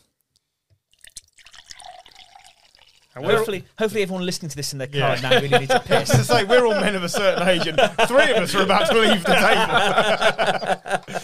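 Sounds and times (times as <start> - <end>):
liquid pouring from a bottle into a glass: 0.9 - 3.4
faint drips: 1.0 - 3.2
speech: 3.2 - 10.8
laughter: 5.0 - 11.2.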